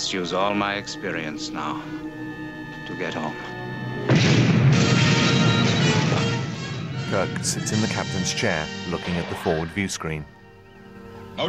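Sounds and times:
speech: 0:00.1 - 0:02.2, 0:02.9 - 0:04.3, 0:07.1 - 0:10.4
weapon blast explosion striking a ship: 0:04.1 - 0:08.2.

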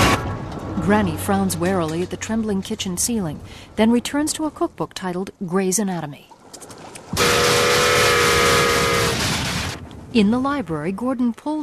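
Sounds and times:
speech: 0:00.8 - 0:06.3, 0:10.1 - 0:11.6
steam train barreling through a quaking model: 0:07.2 - 0:09.6.

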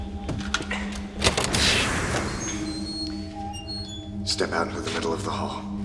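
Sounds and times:
door being opened slowly: 0:00.2 - 0:03.3
speech: 0:04.4 - 0:05.7.

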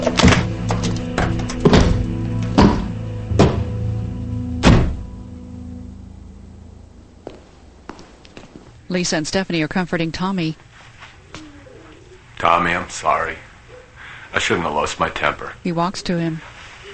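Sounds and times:
heavy thuds and knocks of a briefcase of cash put into a car trunk: 0:00.0 - 0:05.2
speech: 0:08.9 - 0:10.7, 0:12.4 - 0:13.5, 0:14.3 - 0:16.5.

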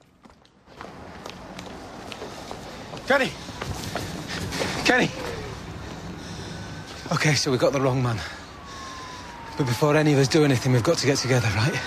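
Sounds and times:
footsteps of someone running out of a club: 0:00.0 - 0:07.1
noise: 0:00.0 - 0:11.8
speech: 0:03.1 - 0:03.4, 0:04.9 - 0:05.3, 0:07.1 - 0:08.4, 0:09.6 - 0:11.8.

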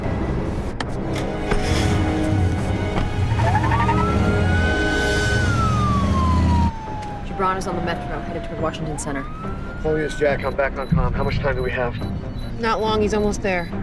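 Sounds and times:
car driving away at speed: 0:01.1 - 0:09.8
speech: 0:07.5 - 0:13.8.

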